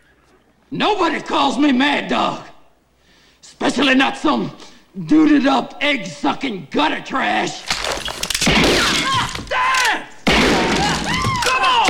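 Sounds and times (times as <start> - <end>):
speech: 0.7 - 2.5, 3.6 - 7.7
gunshot fired at the floor: 8.4 - 9.5, 10.2 - 11.8
raised voices: 8.8 - 11.8.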